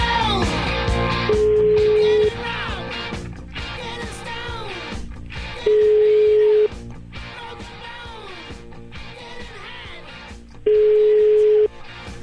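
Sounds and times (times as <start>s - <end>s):
busy music: 0.0s - 12.2s
telephone ringing tones from an outgoing call: 1.3s - 2.4s, 5.6s - 6.8s, 10.6s - 11.7s.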